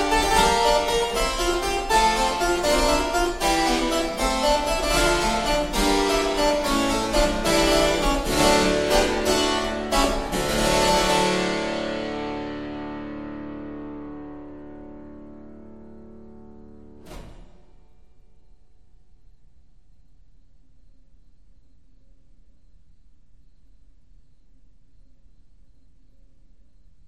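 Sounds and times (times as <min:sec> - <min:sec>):
suite in D minor: 0:00.0 - 0:17.0.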